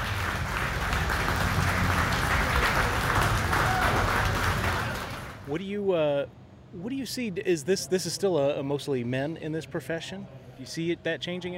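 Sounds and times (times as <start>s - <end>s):
audience round of applause: 0.0s - 5.5s
speech: 5.5s - 11.5s.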